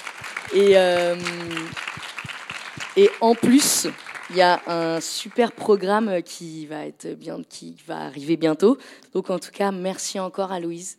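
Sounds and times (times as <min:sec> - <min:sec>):
audience clapping: 0:00.0 - 0:06.1
speech: 0:00.5 - 0:01.8, 0:03.0 - 0:10.9.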